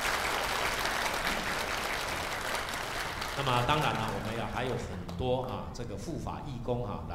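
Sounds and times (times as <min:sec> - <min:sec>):
audience applause: 0:00.0 - 0:05.5
speech: 0:03.4 - 0:07.1.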